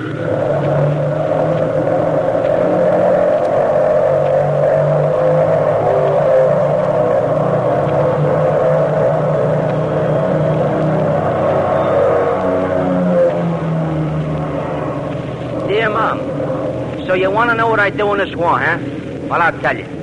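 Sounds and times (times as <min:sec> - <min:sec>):
combat cargo plane engines during takeoff: 0:00.0 - 0:20.0
speech: 0:17.5 - 0:19.9.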